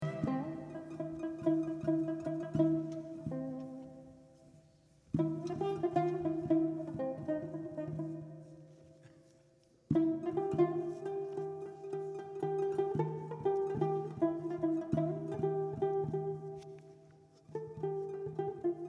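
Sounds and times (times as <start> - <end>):
tanbur taksim improvisation: 0.0 - 18.8.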